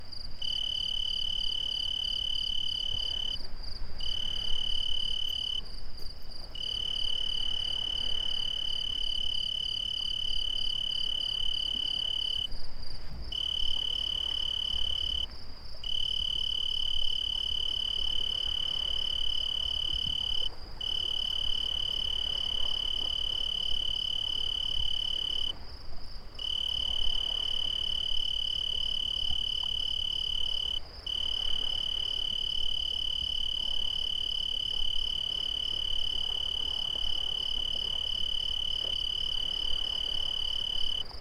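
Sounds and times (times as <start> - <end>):
crickets: 0.0 - 41.1.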